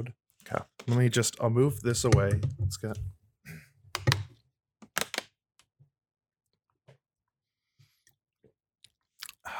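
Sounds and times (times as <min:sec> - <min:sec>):
speech: 0:00.0 - 0:03.2
person drinking a glass of water: 0:08.8 - 0:09.5.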